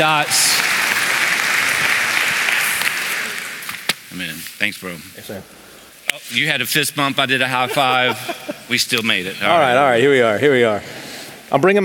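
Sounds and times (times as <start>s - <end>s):
speech: 0.0s - 0.6s, 4.2s - 5.6s, 6.2s - 11.8s
audience applause: 0.0s - 3.8s
laughter: 7.2s - 9.8s.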